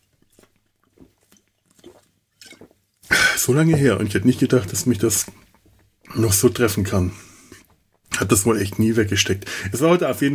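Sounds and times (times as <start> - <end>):
drink being sipped with mouth and swallowing noises: 0.0 - 8.2
speech: 3.4 - 5.4, 6.2 - 7.3, 8.2 - 10.3.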